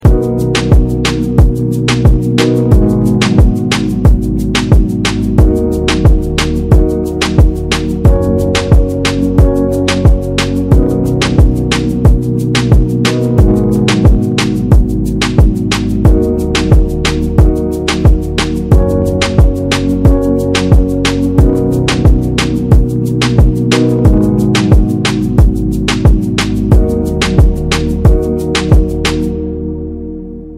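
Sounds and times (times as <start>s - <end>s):
instrumental music: 0.0s - 30.5s.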